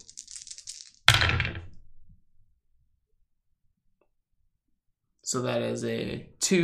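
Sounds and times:
dice rattling in a hand: 0.0 - 1.7
speech: 5.3 - 6.6.

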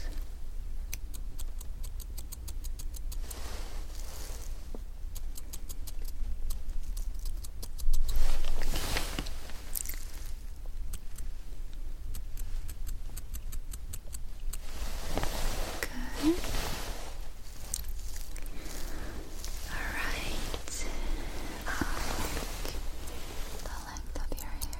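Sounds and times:
scissors snipping eyebrows during brow waxing: 0.9 - 3.3, 5.1 - 8.2, 10.9 - 14.6, 24.3 - 24.7
soft rustling: 3.1 - 13.3, 14.2 - 24.7.

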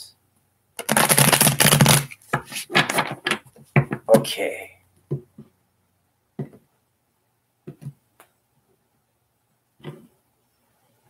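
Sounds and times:
tarot cards being shuffled: 0.8 - 3.4
speech: 4.2 - 4.8.

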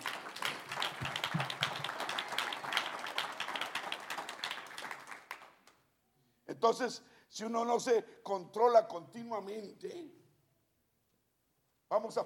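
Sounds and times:
audience applause: 0.0 - 5.6
speech: 6.6 - 10.2, 11.9 - 12.2.

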